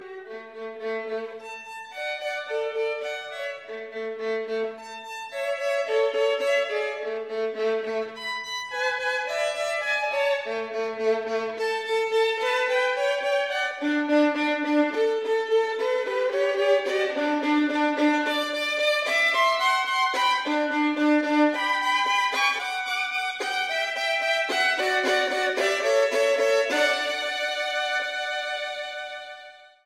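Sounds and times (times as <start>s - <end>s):
classical chaconne: 0.0s - 29.8s.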